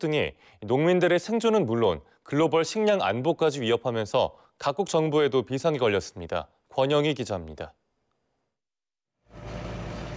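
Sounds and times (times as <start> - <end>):
speech: 0.0 - 7.8
tractor engine arriving at a wheat farm near Cape Town: 9.3 - 10.1.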